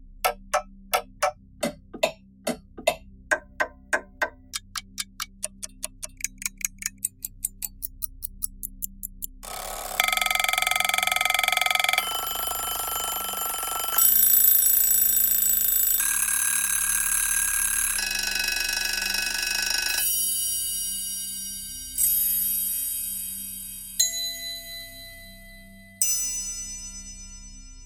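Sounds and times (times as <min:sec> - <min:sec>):
clocks: 0:00.3 - 0:20.1.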